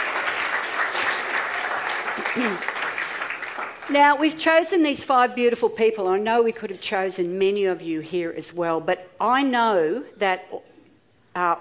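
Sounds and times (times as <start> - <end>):
audience applause welcoming people onto a stage: 0.0 - 4.0
speech: 2.3 - 2.7, 3.9 - 10.7, 11.4 - 11.5.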